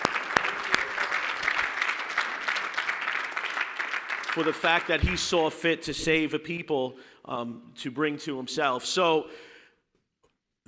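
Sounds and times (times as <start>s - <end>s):
audience clapping: 0.0s - 5.2s
speech: 4.4s - 9.5s.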